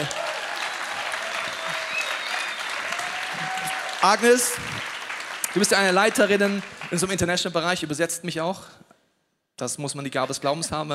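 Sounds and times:
thunderous applause from audience: 0:00.0 - 0:07.6
speech: 0:04.0 - 0:04.9, 0:05.5 - 0:08.8, 0:09.6 - 0:10.9.

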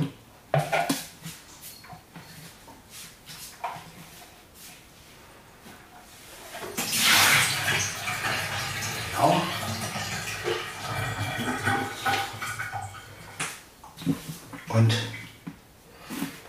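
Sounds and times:
water being poured out: 0:06.5 - 0:15.4
speech: 0:14.8 - 0:15.0.

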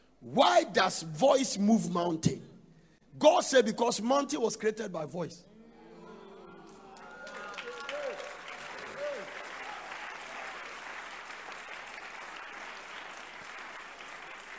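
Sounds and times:
speech: 0:00.2 - 0:02.5, 0:03.2 - 0:05.5
audience clapping in church: 0:06.7 - 0:14.5.

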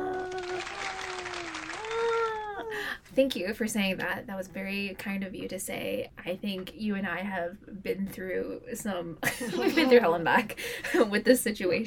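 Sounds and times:
crowd applause: 0:00.0 - 0:02.6
speech: 0:03.2 - 0:11.8.

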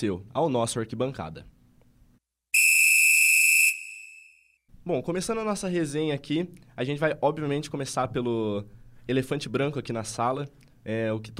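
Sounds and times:
speech: 0:00.0 - 0:01.6, 0:04.8 - 0:11.3
referee's whistle blast: 0:02.6 - 0:04.5.

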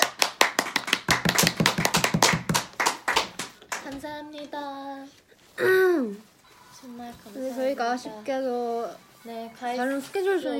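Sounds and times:
hand clapping: 0:00.0 - 0:04.0
speech: 0:04.2 - 0:10.5.

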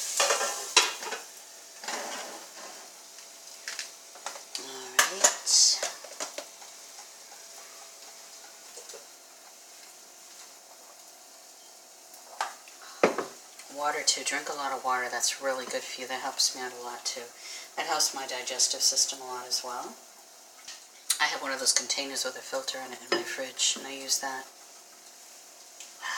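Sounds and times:
utensil clinking and scraping against the pan: 0:00.0 - 0:03.0
food sizzling in a hot pan: 0:00.0 - 0:26.1
speech: 0:13.8 - 0:20.1, 0:21.2 - 0:24.6.

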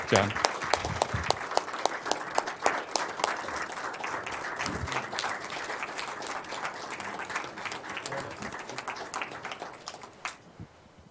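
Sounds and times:
audience applause: 0:00.0 - 0:10.4.

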